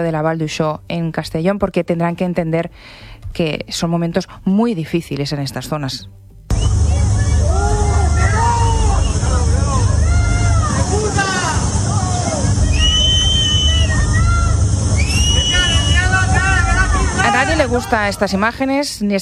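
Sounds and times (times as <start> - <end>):
speech: 0.0 - 6.8, 17.7 - 19.2
angry crowd shouting at arriving politician Pedro Sánchez: 6.5 - 18.7.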